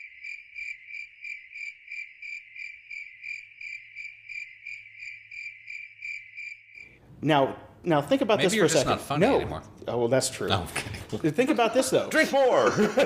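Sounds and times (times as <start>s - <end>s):
cricket chirping sound effect: 0.0s - 7.0s
speech: 7.2s - 13.0s
laughter: 10.8s - 13.0s.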